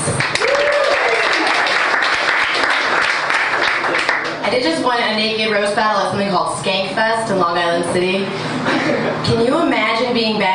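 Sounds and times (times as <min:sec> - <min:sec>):
audience applause: 0:00.2 - 0:04.4
person whooping: 0:00.4 - 0:01.6
speech: 0:04.9 - 0:10.5.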